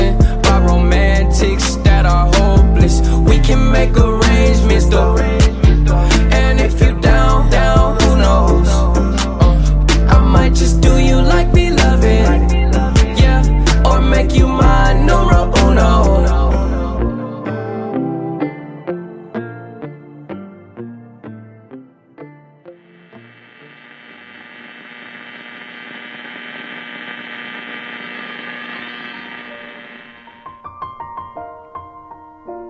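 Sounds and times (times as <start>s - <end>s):
song played on the show: 0.0s - 17.1s.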